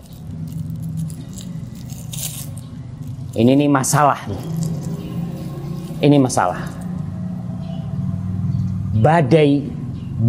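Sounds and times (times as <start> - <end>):
rope being tied into a knot: 0.0 - 6.8
speech: 3.4 - 4.9, 6.0 - 6.8, 9.0 - 10.2.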